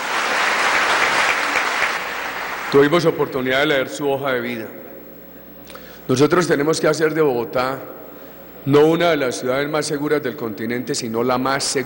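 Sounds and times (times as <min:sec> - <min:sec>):
audience applause for a newly promoted general at a Bogotá security event: 0:00.0 - 0:02.8
speech: 0:02.7 - 0:04.8, 0:06.1 - 0:08.0, 0:08.6 - 0:11.8.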